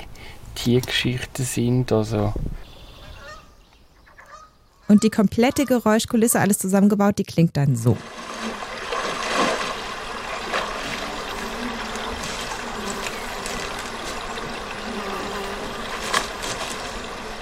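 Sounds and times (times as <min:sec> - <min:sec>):
speech: 0:00.6 - 0:02.6, 0:04.9 - 0:08.2
water: 0:07.8 - 0:17.4
barefoot footsteps on dry grass: 0:11.8 - 0:14.8, 0:15.6 - 0:17.2.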